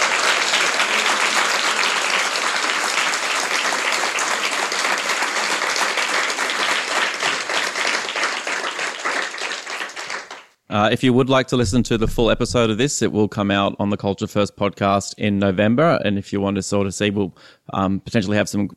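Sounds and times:
crowd applauding: 0.0 - 10.6
speech: 10.8 - 18.7.

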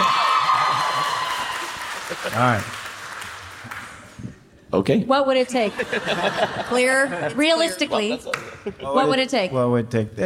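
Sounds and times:
audience cheering: 0.0 - 3.2
laughter: 0.6 - 2.7, 5.6 - 9.1
speech: 2.2 - 2.8, 4.7 - 10.2.

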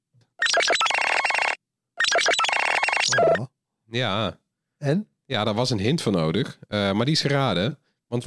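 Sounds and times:
Nothing phone ringtone: 0.4 - 3.4
speech: 3.4 - 8.2.

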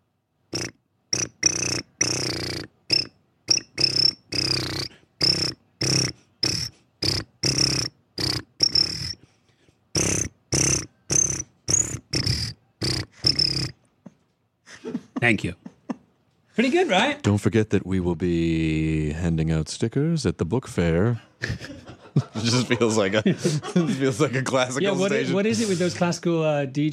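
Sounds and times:
voice imitating crickets chirping in a march-like beat: 0.5 - 9.2, 10.0 - 13.8
laughter: 14.1 - 16.2, 21.2 - 25.9
speech: 15.3 - 15.6, 16.6 - 21.6, 22.4 - 26.9.

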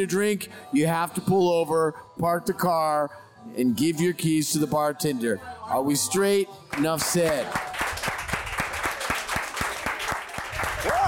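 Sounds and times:
speech: 0.0 - 7.8
single person clapping fast: 6.7 - 11.0.

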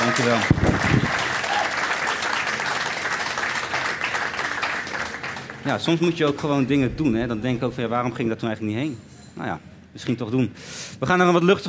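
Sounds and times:
audience applause: 0.0 - 6.4
speech: 0.1 - 1.1, 5.6 - 11.6.

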